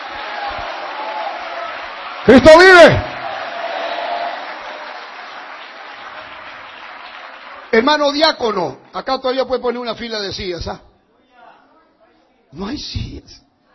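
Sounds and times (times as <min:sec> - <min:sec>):
audience clapping: 0:00.0 - 0:09.2
speech: 0:02.3 - 0:03.1, 0:07.8 - 0:10.9, 0:12.5 - 0:13.4.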